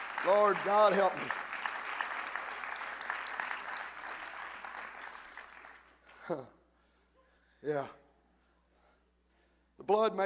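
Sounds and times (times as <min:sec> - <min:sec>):
audience clapping hands: 0:00.0 - 0:06.4
speech: 0:00.2 - 0:01.5, 0:06.3 - 0:06.6, 0:07.6 - 0:08.0, 0:09.8 - 0:10.2.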